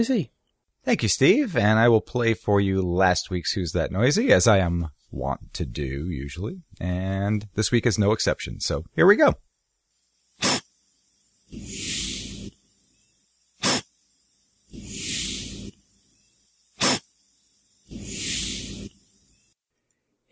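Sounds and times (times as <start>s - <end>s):
speech: 0.0s - 9.5s
devil's urn cup fungus hissing out spores: 10.3s - 19.5s.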